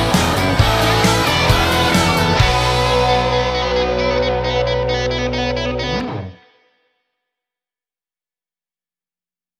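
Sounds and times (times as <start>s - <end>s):
backing music: 0.0s - 6.4s.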